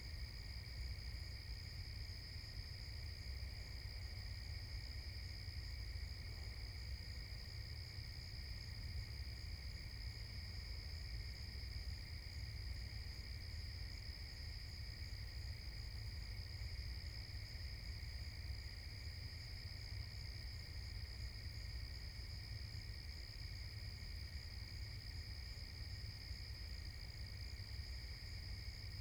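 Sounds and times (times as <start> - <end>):
forest at night: 0.0 - 28.9.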